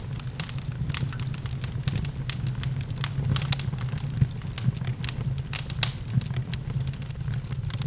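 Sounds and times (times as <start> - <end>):
fire: 0.0 - 7.8.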